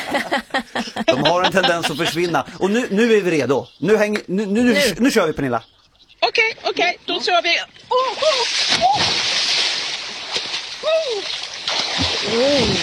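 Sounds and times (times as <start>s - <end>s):
laughter: 0.0s - 3.1s
speech: 0.1s - 5.7s, 6.8s - 9.2s, 12.2s - 12.8s
someone bathing splashing in water: 6.4s - 12.8s.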